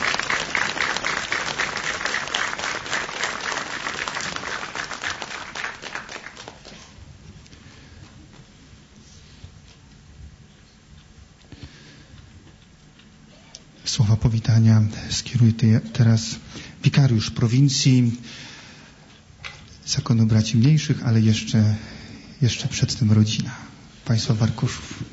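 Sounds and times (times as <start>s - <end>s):
audience applause: 0.0s - 7.0s
speech: 14.5s - 18.5s, 20.0s - 25.0s.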